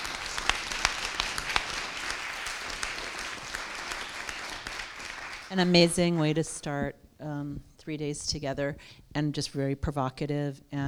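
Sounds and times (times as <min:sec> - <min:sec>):
audience applause: 0:00.0 - 0:06.1
speech: 0:05.5 - 0:10.8.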